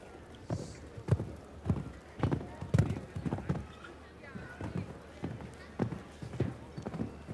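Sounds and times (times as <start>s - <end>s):
horse galloping at a fast stride: 1.1s - 3.6s, 4.6s - 7.3s.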